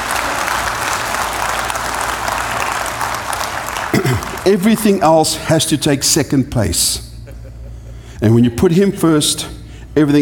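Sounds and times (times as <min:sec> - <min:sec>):
round of applause: 0:00.0 - 0:04.8
speech: 0:03.9 - 0:07.1, 0:08.2 - 0:10.2.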